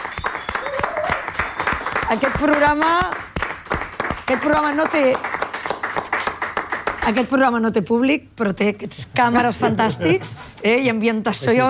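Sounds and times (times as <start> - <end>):
team applauding in studio: 0.0 - 7.4
voices calling out and cheering: 0.2 - 1.4
speech: 2.1 - 3.2, 4.3 - 5.2, 7.1 - 11.6.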